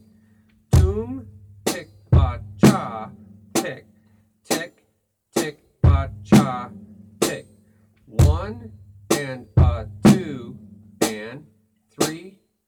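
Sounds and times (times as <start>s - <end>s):
drum beat: 0.7s - 3.8s, 5.4s - 7.5s, 8.1s - 11.3s.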